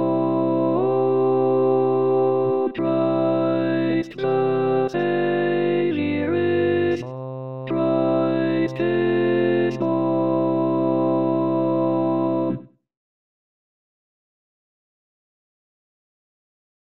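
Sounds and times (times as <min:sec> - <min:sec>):
tenor singing: 0:00.0 - 0:12.6.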